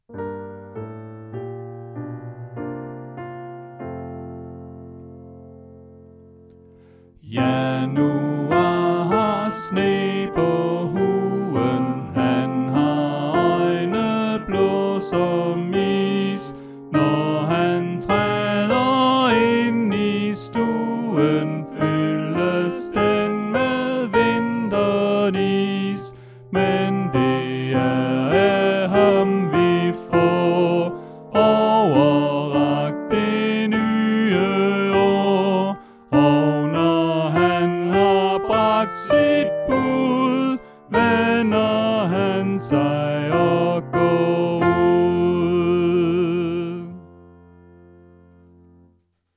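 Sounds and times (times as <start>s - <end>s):
soprano voice: 7.2s - 47.2s.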